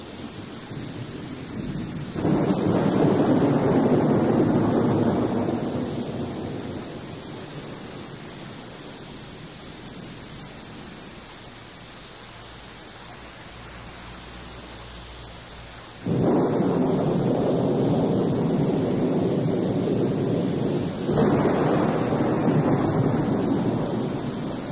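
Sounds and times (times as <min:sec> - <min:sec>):
thunder: 0:00.0 - 0:11.0, 0:16.0 - 0:24.6
torrential rain: 0:00.0 - 0:24.6.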